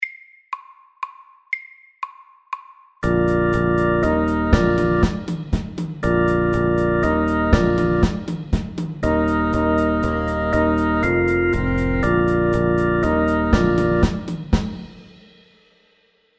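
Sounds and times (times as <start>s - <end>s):
fast fusion music: 3.0s - 15.0s.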